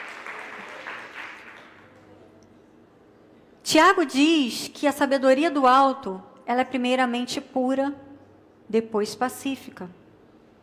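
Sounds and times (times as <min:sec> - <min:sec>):
crowd clapping: 0:00.0 - 0:02.1
speech: 0:03.7 - 0:08.0, 0:08.7 - 0:10.0.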